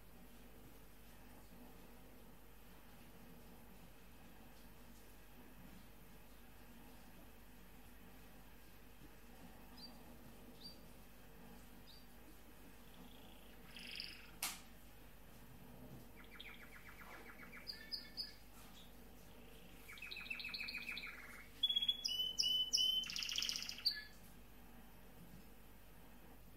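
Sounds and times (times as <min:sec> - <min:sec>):
canary singing: 0:09.7 - 0:10.9, 0:11.9 - 0:12.1, 0:12.8 - 0:14.4, 0:16.1 - 0:24.2.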